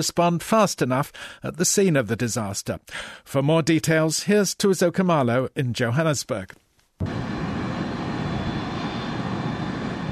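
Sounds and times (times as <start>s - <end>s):
speech: 0.0s - 7.3s
aircraft engine roar from a plane landing on tarmac at Waterkloof Air Base in Pretoria: 7.0s - 10.1s.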